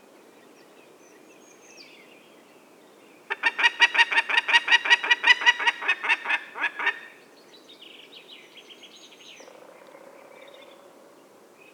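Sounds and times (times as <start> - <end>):
peregrine falcon giving harsh cackles: 3.3 - 7.2.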